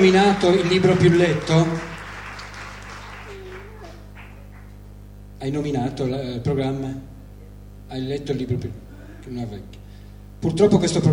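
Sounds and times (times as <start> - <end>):
speech: 0.0 - 1.9, 5.4 - 7.1, 7.9 - 9.8, 10.4 - 11.1
crowd applauding: 0.0 - 4.9.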